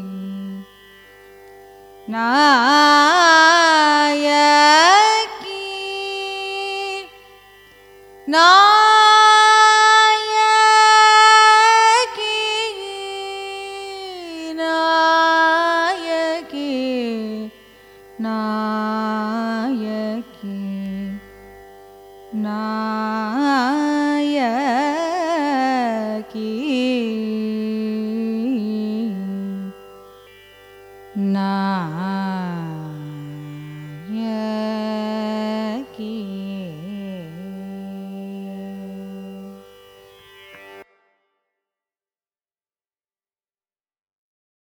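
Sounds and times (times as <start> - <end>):
Carnatic music: 0.0 - 41.6.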